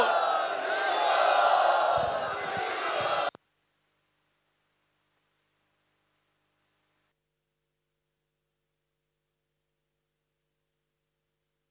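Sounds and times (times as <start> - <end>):
crowd chanting to welcome a swami at a devotional gathering: 0.0 - 3.4.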